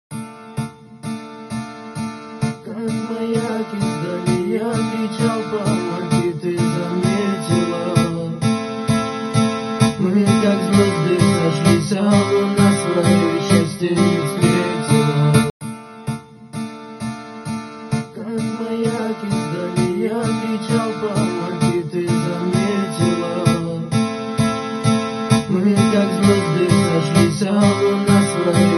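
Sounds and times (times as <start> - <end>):
Arabic remix music: 0.1 - 28.7.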